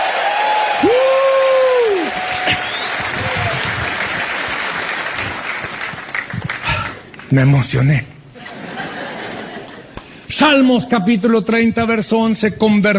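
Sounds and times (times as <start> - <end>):
high rising whoop: 0.0 - 3.9
crowd shouting and cheering: 0.0 - 4.6
crowd applauding: 0.0 - 7.3
speech: 7.3 - 8.1, 10.4 - 12.9
laughter: 8.4 - 10.0.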